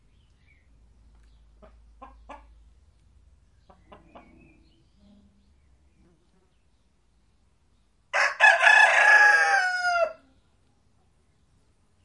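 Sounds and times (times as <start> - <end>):
chickens clucking: 1.3 - 2.8, 3.6 - 5.2
rooster crowing cock-a-doodle-doo: 8.1 - 10.2.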